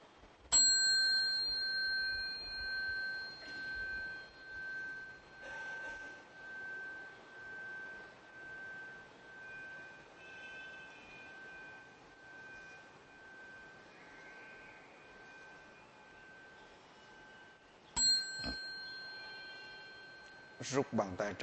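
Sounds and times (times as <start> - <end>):
Buddhist temple bell ringing: 0.5 - 21.4
chime strike cueing worshippers to bow during Buddhist prostrations: 0.6 - 14.6, 18.0 - 21.0
speech: 20.6 - 21.4.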